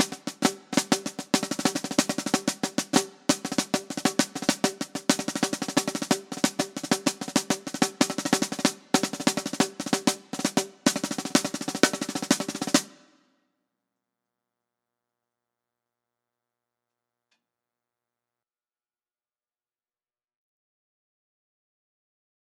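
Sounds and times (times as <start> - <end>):
marching snare drum: 0.0 - 13.1.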